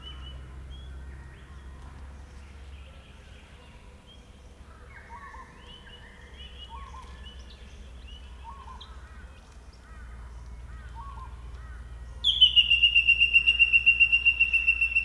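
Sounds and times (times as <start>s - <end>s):
Colluricincla harmonica grey shrike-thrush whistling call: 12.2s - 15.0s.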